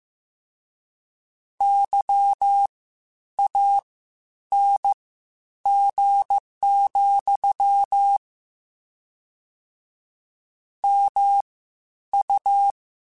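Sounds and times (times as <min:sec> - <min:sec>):
Morse code beeps: 0:01.6 - 0:02.7, 0:04.5 - 0:05.0, 0:05.7 - 0:08.2, 0:10.8 - 0:11.5, 0:12.2 - 0:12.8.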